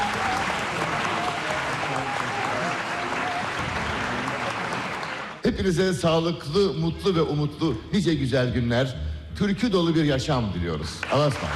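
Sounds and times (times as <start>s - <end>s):
audience applause for a choir and its conductor at a folk song concert: 0.0s - 5.4s, 11.0s - 11.5s
speech: 5.4s - 11.5s.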